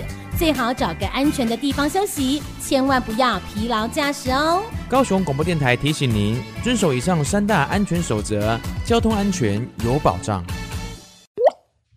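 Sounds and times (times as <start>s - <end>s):
speech: 0.4s - 10.6s
water drop plop: 11.4s - 11.7s.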